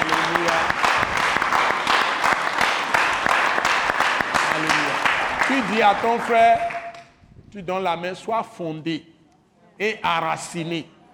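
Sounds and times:
church congregation applauding during a worship service: 0:00.0 - 0:07.1
speech: 0:05.6 - 0:06.7, 0:07.5 - 0:09.1, 0:09.8 - 0:11.0.

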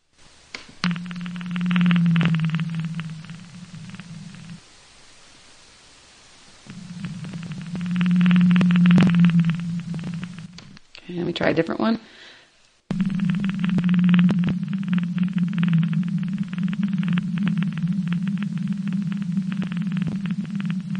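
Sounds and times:
blue whale low-frequency call: 0:00.8 - 0:04.6, 0:06.6 - 0:10.7, 0:12.9 - 0:20.9
speech: 0:11.5 - 0:12.2.

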